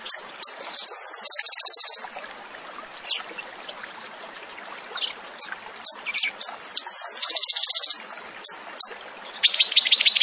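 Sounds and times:
Tembakan bird song buzzy trill: 0.1 - 2.4, 5.0 - 10.1.

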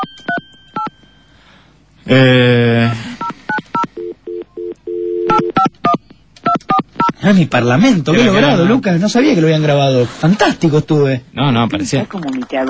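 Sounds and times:
phone number keyed in with dual-tone keypad beeps: 0.0 - 0.9, 3.2 - 7.2
speech: 2.1 - 3.0, 7.2 - 12.6.

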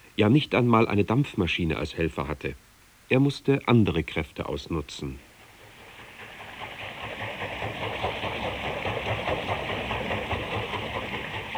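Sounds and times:
speech: 0.2 - 5.3
flowing stream water: 4.4 - 11.5.

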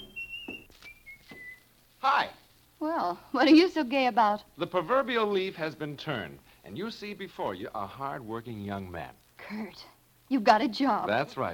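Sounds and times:
man whistling a tune: 0.0 - 1.7
rustling: 0.0 - 2.6
speech: 2.0 - 11.5.

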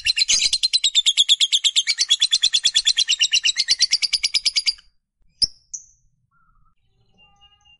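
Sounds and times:
lovebird squawking: 0.0 - 4.8.

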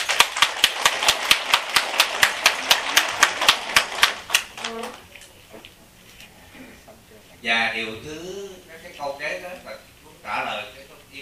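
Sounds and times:
Buddhist followers clapping for a nun: 0.0 - 4.9
speech: 7.4 - 11.2.

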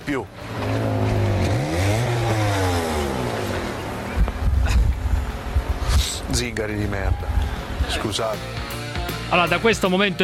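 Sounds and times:
speech: 0.1 - 0.6, 6.4 - 8.7, 9.3 - 10.2
car or moped passing by: 0.4 - 6.3.

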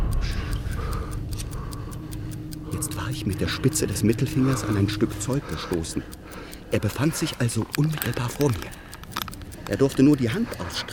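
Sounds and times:
low rumbling hum: 0.0 - 7.8
watch ticking: 0.0 - 10.9
speech: 2.8 - 8.9, 9.7 - 10.9.

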